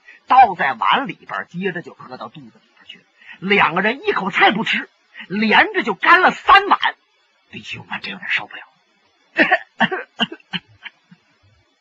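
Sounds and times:
speech: 0:00.4 - 0:06.9, 0:07.5 - 0:08.7, 0:09.4 - 0:10.4
man coughing: 0:09.4 - 0:11.1.

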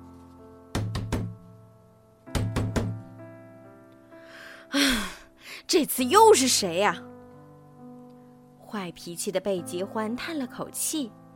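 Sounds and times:
loud knocking on a door: 0:00.8 - 0:01.4, 0:02.3 - 0:03.0
speech: 0:05.7 - 0:07.1, 0:08.7 - 0:11.2.

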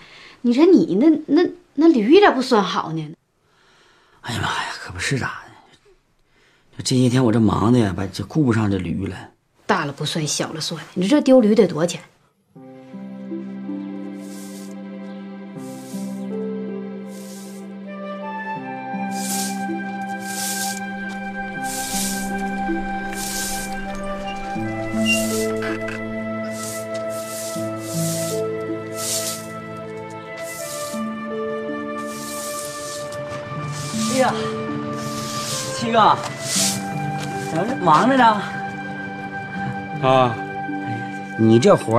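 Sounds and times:
speech: 0:00.4 - 0:03.2, 0:04.3 - 0:05.4, 0:06.8 - 0:12.1, 0:37.9 - 0:38.5, 0:40.0 - 0:40.4, 0:41.4 - 0:41.9
broom sweeping a courtyard: 0:14.1 - 0:14.8, 0:15.6 - 0:16.4, 0:17.1 - 0:17.7, 0:19.0 - 0:38.2.

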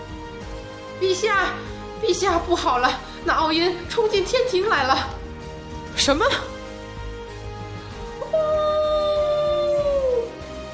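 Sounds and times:
speech: 0:01.0 - 0:05.2, 0:06.0 - 0:06.5
long shrill beast howl: 0:08.2 - 0:10.4.

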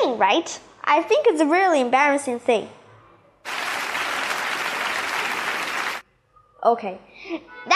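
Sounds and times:
speech: 0:00.1 - 0:02.8, 0:06.6 - 0:07.7
audience applause: 0:03.5 - 0:06.0.

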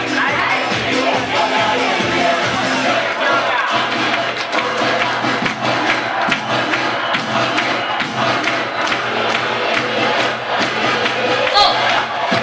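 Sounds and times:
crowd cheering and shouting: 0:00.0 - 0:12.4
large audience applause: 0:02.8 - 0:12.4.

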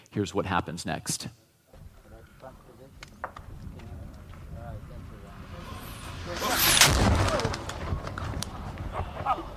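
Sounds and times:
speech: 0:00.2 - 0:01.4
mortar shell exploding near a trench position near a tank in Afghanistan: 0:06.4 - 0:08.2.

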